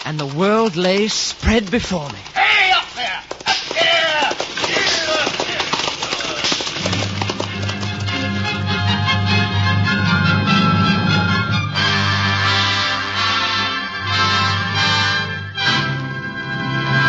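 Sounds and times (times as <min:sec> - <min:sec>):
horses' hooves clattering along a road: 0:00.0 - 0:09.6
speech: 0:00.1 - 0:02.4
sustained orchestral music: 0:06.9 - 0:17.0.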